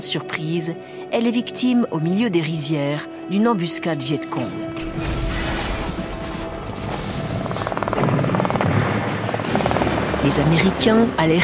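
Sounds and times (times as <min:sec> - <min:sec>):
speech: 0:00.0 - 0:05.2, 0:10.3 - 0:11.4
American military helicopter rotor chopping: 0:06.8 - 0:11.4.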